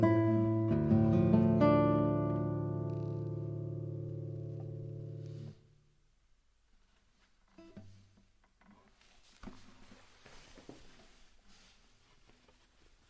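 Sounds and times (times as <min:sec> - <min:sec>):
classical guitar recorded with studio microphone: 0:00.0 - 0:05.8, 0:07.4 - 0:08.9.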